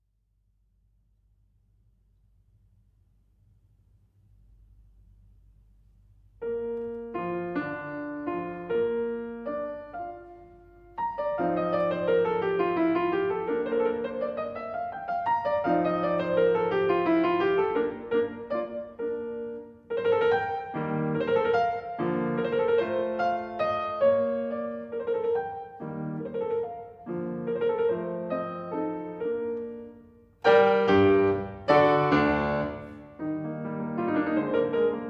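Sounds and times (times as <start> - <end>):
piano sonata allegro movement in B flat major: 6.4 - 35.0.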